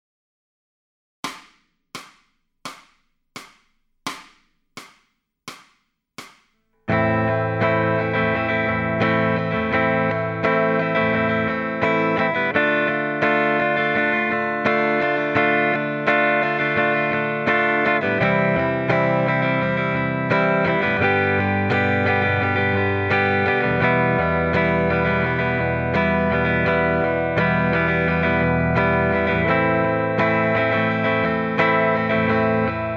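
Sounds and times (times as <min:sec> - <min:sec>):
electric guitar lead backing track: 0:06.9 - 0:32.9.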